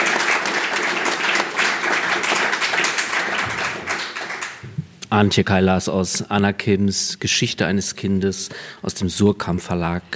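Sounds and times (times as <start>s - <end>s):
audience applause: 0.0s - 4.6s
speech: 5.1s - 10.1s.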